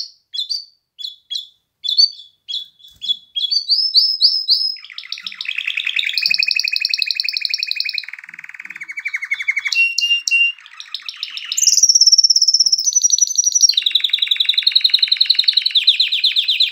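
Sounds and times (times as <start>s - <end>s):
canary song: 0.0s - 16.7s.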